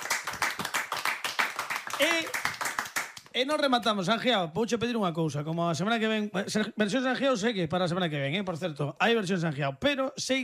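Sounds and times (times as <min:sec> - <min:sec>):
audience applause: 0:00.0 - 0:03.3
speech: 0:03.4 - 0:10.4.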